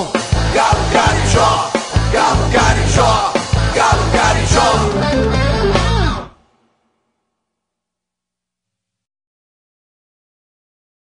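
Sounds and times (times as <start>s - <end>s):
rock music: 0.0s - 6.4s.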